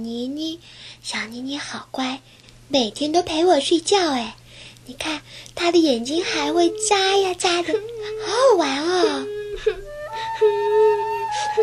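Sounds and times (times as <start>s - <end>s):
speech: 0.0s - 9.8s, 10.4s - 11.6s
child crying: 6.2s - 11.6s.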